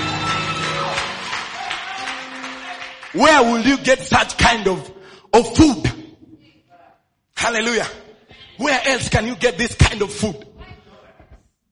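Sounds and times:
audience applause: 0.0 - 3.6
speech: 3.1 - 6.0, 7.4 - 8.0, 8.6 - 10.5.

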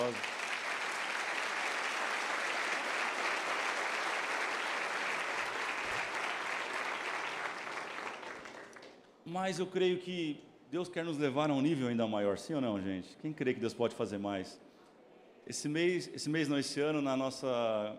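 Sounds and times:
large audience applause: 0.0 - 9.0
speech: 0.1 - 0.3, 9.3 - 14.6, 15.5 - 17.9.

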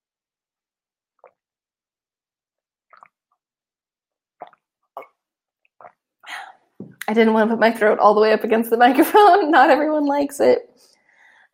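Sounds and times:
sipping tea: 2.9 - 3.4, 4.4 - 7.1
speech: 7.1 - 10.9.

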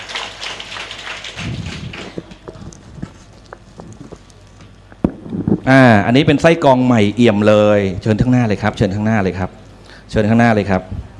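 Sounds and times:
audience applause: 0.0 - 2.6
speech: 5.7 - 11.1.

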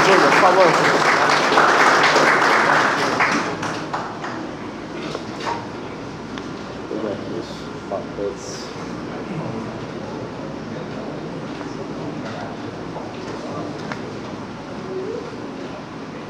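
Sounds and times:
audience applause: 0.0 - 4.8
speech: 0.1 - 1.0.

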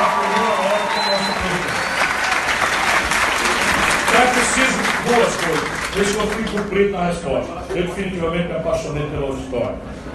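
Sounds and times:
audience applause: 0.0 - 6.8
speech: 5.1 - 10.1.

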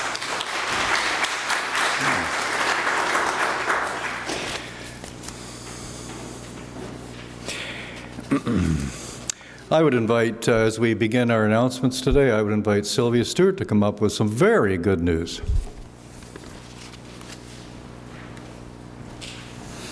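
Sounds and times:
church congregation applauding to welcome a newly introduced retired member: 0.0 - 5.0
speech: 8.4 - 9.0, 9.7 - 15.7.

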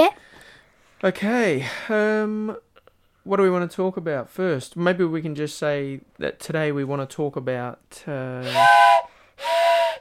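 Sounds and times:
speech: 1.0 - 9.9
steam train whistle: 8.4 - 9.9.

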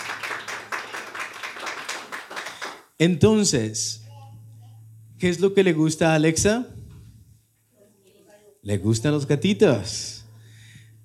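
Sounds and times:
group clapping hands: 0.0 - 3.0
speech: 3.0 - 4.0, 5.2 - 6.8, 8.6 - 10.2.

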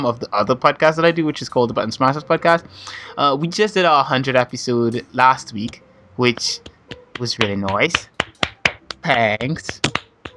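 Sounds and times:
speech: 0.0 - 8.1, 9.0 - 10.1
clapping: 7.1 - 10.1.

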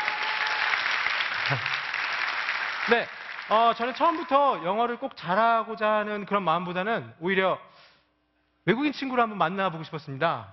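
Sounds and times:
audience applause: 0.0 - 4.6
speech: 1.5 - 1.8, 2.9 - 7.8, 8.7 - 10.5.

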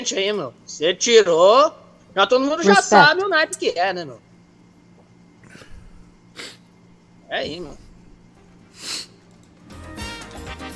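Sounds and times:
speech: 0.0 - 4.3, 7.3 - 7.8
breathy rushing noise as air is drawn in: 5.4 - 6.6, 8.7 - 9.2
sniff while using corticosteroid inhaler: 5.5 - 6.7, 8.7 - 9.2.

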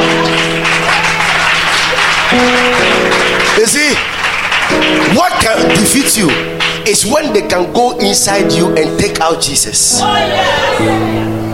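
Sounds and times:
audience clapping: 0.0 - 7.4
speech: 3.6 - 4.2, 4.8 - 11.5.

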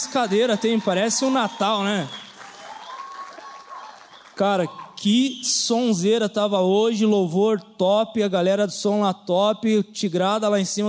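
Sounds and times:
audience applauding: 0.0 - 5.1
speech: 0.1 - 2.2, 4.4 - 10.8.

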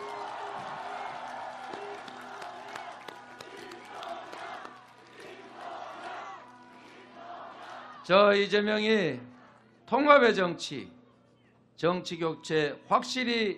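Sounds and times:
cheers and shouted voices: 0.0 - 8.1
crowd applauding at political rally: 0.0 - 8.1
speech: 8.1 - 9.3, 9.9 - 11.0, 11.8 - 13.5.

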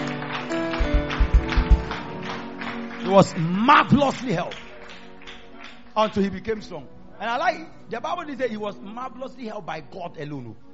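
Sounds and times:
audience clapping hands: 0.0 - 6.6
speech: 3.1 - 4.6, 6.0 - 10.7.

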